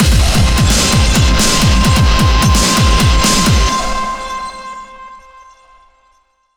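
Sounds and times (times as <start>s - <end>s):
action boss battle music: 0.0s - 4.8s.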